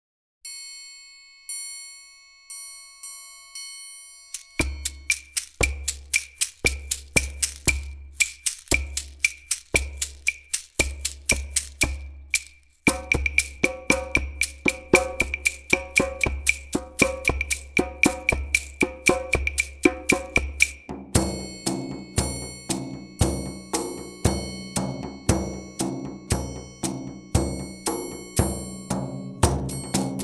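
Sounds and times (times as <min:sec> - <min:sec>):
percussion: 0:00.5 - 0:30.2.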